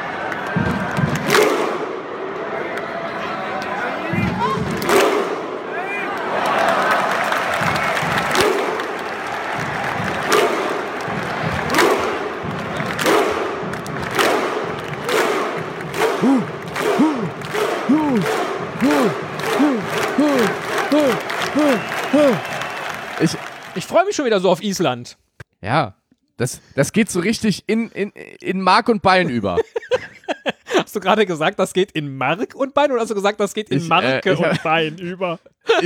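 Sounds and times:
synchronized claps: 0.0s - 1.9s, 2.7s - 24.0s
deep group shout: 0.0s - 23.7s
played-in crowd cheering: 0.0s - 25.0s, 29.3s - 31.6s, 33.6s - 35.8s
laughter: 5.8s - 9.0s, 16.1s - 22.5s, 27.7s - 28.5s, 29.1s - 32.6s, 33.6s - 35.8s
speech: 24.0s - 30.1s, 30.8s - 35.8s.

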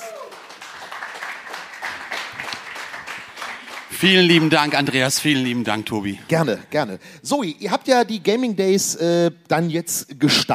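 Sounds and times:
audience applause: 0.0s - 5.8s
speech: 4.0s - 10.5s.

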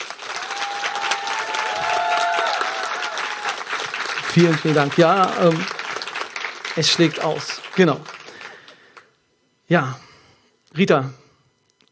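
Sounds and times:
audience applause: 0.0s - 9.0s
faint whistles and cheers: 0.2s - 3.9s
speech: 4.4s - 5.8s, 6.8s - 8.1s, 9.7s - 10.0s, 10.8s - 11.2s.

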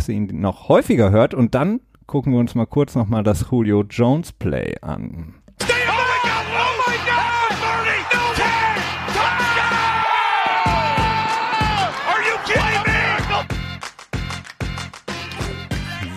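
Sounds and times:
speech: 0.0s - 5.7s
layered yelling and whooping voices: 5.6s - 13.4s
pounding beat of custom audio drop jingle: 5.6s - 16.0s.

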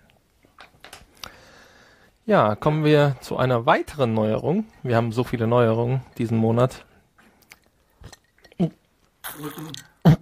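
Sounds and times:
speech: 2.3s - 6.9s, 8.6s - 8.8s, 9.4s - 9.9s
person spitting out ice cubes: 8.6s - 10.1s.

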